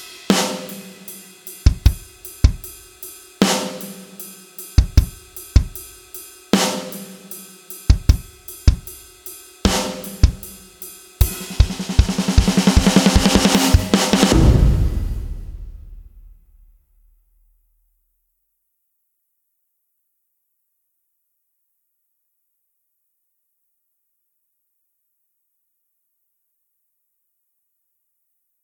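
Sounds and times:
different drums: 0.0s - 16.7s.

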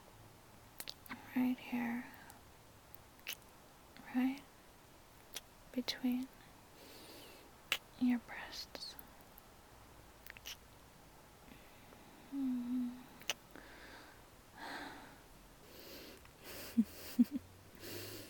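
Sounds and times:
speech: 1.4s - 2.2s, 4.1s - 4.5s, 5.8s - 6.4s, 8.0s - 8.9s, 12.3s - 13.0s
heavy breathing: 11.5s - 17.2s, 17.8s - 18.2s.

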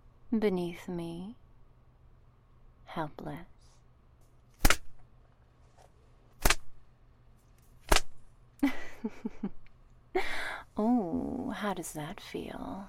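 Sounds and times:
speech: 0.3s - 1.4s, 2.9s - 3.5s, 8.6s - 9.6s, 10.2s - 12.8s
leather slapping against thighs: 4.6s - 4.9s, 6.4s - 6.7s, 7.8s - 8.2s.

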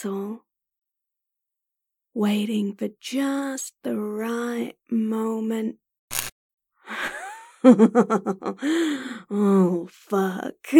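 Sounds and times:
speech: 0.0s - 0.5s, 2.2s - 5.8s, 6.9s - 10.7s
person gasping: 8.6s - 9.3s.

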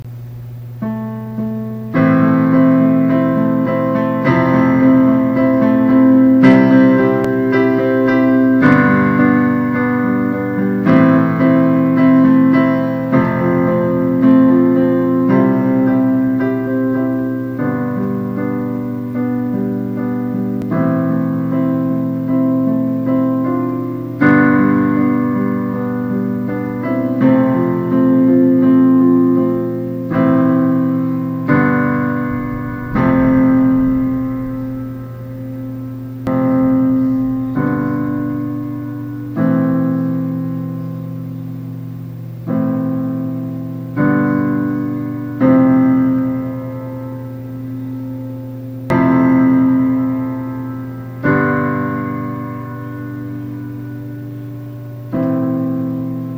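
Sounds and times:
simple piano song: 0.7s - 56.3s.

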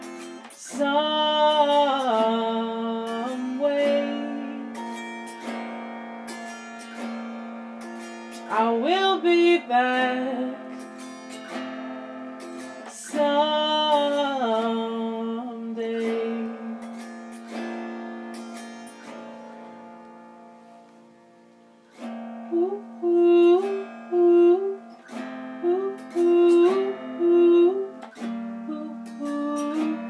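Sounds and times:
person singing an original song: 0.0s - 5.5s, 8.4s - 11.1s, 12.8s - 17.2s, 22.4s - 30.0s
autoharp: 0.0s - 30.0s.

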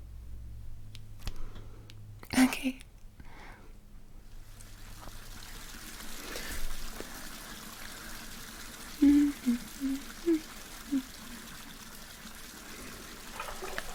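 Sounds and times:
speech: 2.4s - 2.9s
bath water running from tap: 4.4s - 13.9s.

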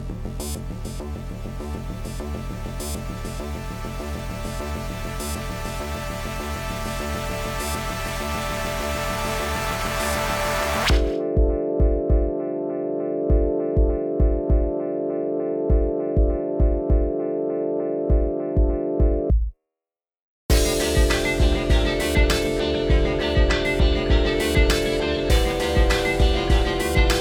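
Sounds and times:
instrumental music: 0.4s - 19.5s, 20.5s - 27.2s.

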